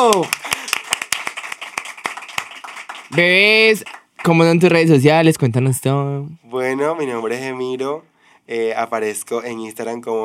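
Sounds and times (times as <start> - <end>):
applause for a guest: 0.0 - 4.6
speech: 0.1 - 0.4, 3.1 - 10.2.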